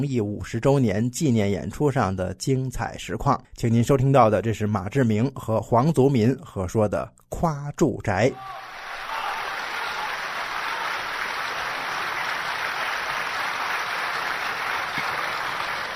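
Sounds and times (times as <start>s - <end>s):
speech: 0.0s - 8.7s
audience applause: 8.4s - 15.9s.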